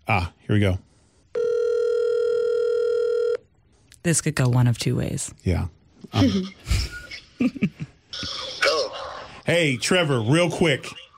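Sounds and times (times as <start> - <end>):
speech: 0.1 - 0.9, 4.0 - 6.8, 7.4 - 8.5, 9.5 - 11.0
outgoing telephone call electronic ring tone: 1.3 - 3.4.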